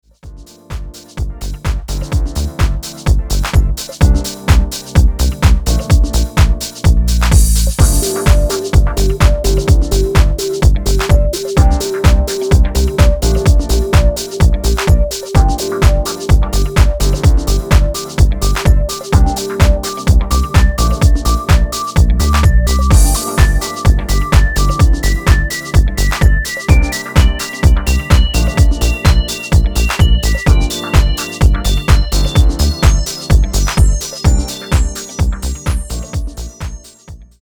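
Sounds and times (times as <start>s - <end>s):
instrumental music: 0.2s - 37.4s.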